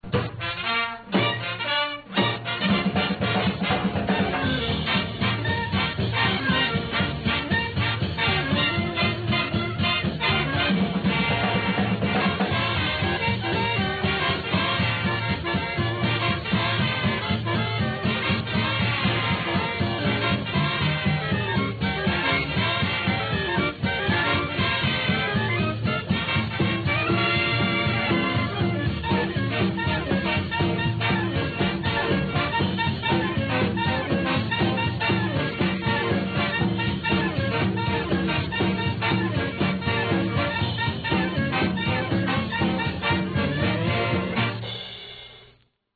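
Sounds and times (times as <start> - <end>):
bugle playing a call: 0.3 - 44.7.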